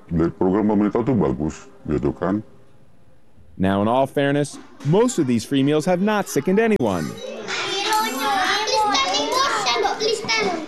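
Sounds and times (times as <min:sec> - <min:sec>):
speech: 0:00.1 - 0:02.5, 0:03.6 - 0:07.3
kindergartners chattering while eating lunch: 0:05.1 - 0:10.6.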